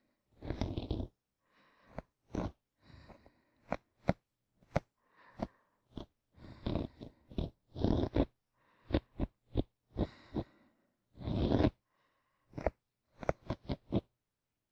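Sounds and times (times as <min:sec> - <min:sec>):
ear cleaning sounds on the left: 0:00.3 - 0:01.2, 0:01.8 - 0:10.5, 0:11.1 - 0:11.8, 0:12.5 - 0:14.1
sleeping breath for restful sleep: 0:01.4 - 0:03.8, 0:05.0 - 0:07.6, 0:08.6 - 0:12.7.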